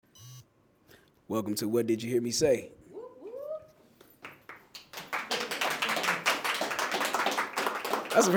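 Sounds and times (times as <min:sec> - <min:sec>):
speech: 0:01.3 - 0:02.8, 0:08.2 - 0:08.3
high-pitched vocal cry: 0:02.9 - 0:03.8
audience applause: 0:04.8 - 0:08.3.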